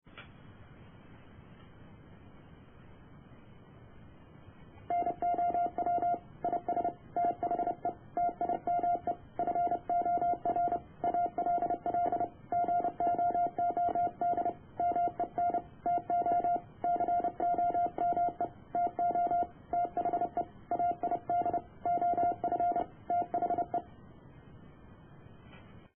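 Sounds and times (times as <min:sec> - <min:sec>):
morse code beeps: 0:04.9 - 0:23.9.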